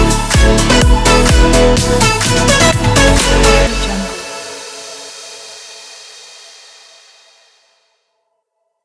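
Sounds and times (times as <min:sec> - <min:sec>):
upbeat positive pop music: 0:00.0 - 0:05.5.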